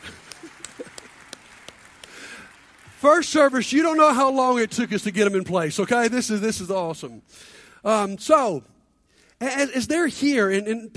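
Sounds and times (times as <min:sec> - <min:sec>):
scattered audience claps: 0:00.0 - 0:04.6
speech: 0:03.0 - 0:08.7, 0:09.4 - 0:10.9.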